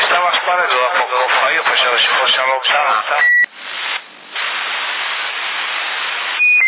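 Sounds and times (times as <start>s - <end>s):
CB radio static hiss in Sassari Italy: 0.0s - 6.6s
short high-pitched electronic radio beep: 6.4s - 6.6s.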